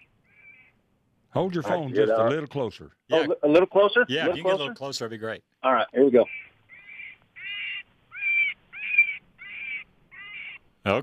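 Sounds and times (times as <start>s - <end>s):
speech: 1.3s - 6.4s
cottontail rabbit distress call: 6.2s - 10.6s.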